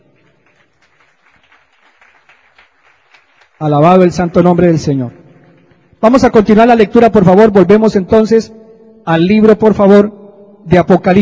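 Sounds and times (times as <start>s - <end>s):
audience applause: 0.0s - 5.9s
speech: 3.6s - 5.2s, 6.0s - 11.2s.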